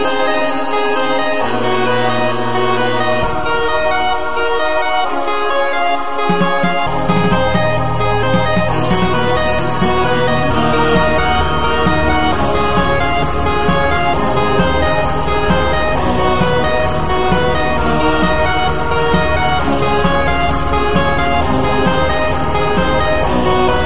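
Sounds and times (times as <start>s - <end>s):
brass: 0.0s - 23.8s
flute: 0.0s - 23.8s
harpsichord: 0.0s - 23.8s
strings: 0.0s - 23.8s.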